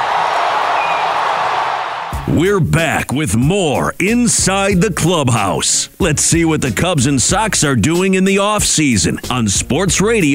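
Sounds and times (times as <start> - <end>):
stadium crowd cheering after home run: 0.0 - 2.7
speech: 2.3 - 10.3.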